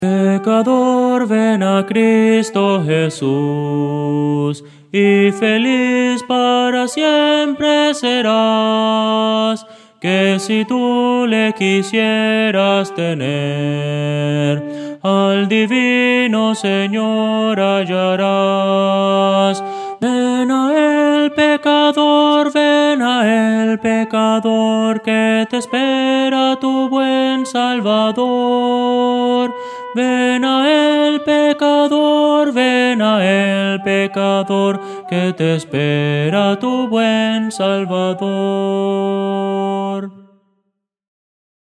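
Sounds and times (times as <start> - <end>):
soprano singing: 0.0 - 40.3.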